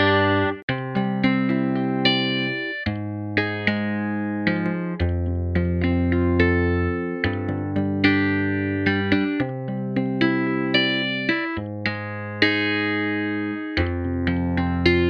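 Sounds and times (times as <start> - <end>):
FM synthesized electric guitar: 0.0 - 15.0.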